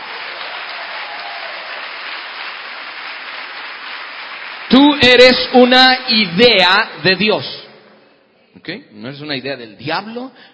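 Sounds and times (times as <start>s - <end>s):
audience applause: 0.0s - 5.6s
speech: 4.7s - 7.6s, 8.6s - 10.5s.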